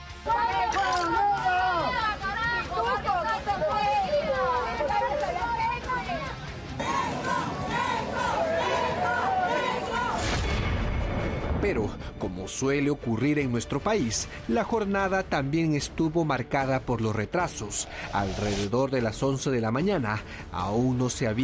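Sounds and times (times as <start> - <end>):
crowd booing and jeering: 0.1 - 10.5
speech: 11.6 - 21.4.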